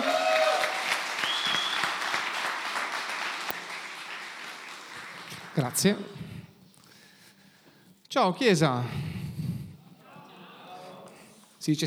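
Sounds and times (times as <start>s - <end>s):
audience applause: 0.0s - 6.1s
speech: 5.6s - 6.2s, 8.1s - 9.1s, 11.6s - 11.8s.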